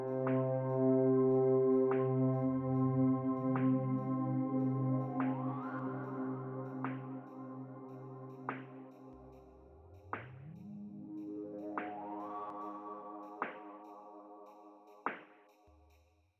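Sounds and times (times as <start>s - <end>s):
background synth: 0.0s - 15.3s
drums: 5.0s - 5.8s, 6.7s - 14.0s, 14.9s - 15.6s.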